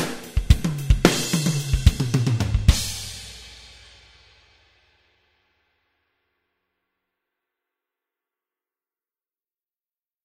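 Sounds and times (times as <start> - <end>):
rock music groove: 0.0 - 3.5.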